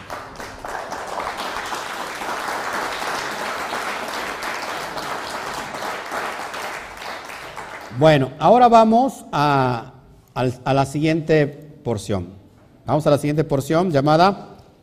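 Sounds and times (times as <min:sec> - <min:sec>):
crowd applause: 0:00.0 - 0:08.0
speech: 0:08.0 - 0:14.5.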